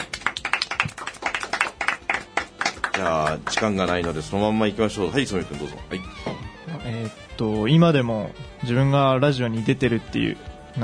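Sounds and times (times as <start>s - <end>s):
applause from a small group: 0.0s - 4.4s
speech: 3.0s - 10.8s.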